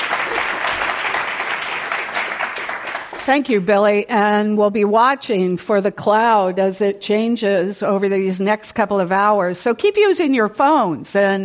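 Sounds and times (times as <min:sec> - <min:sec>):
audience applause welcoming speakers at an event in the Bay Area: 0:00.0 - 0:03.4
speech: 0:03.3 - 0:11.4.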